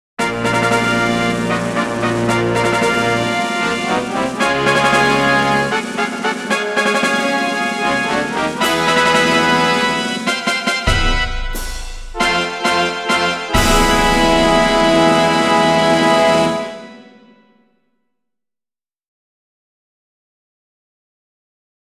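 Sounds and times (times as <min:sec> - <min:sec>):
fanfare: 0:00.2 - 0:17.4.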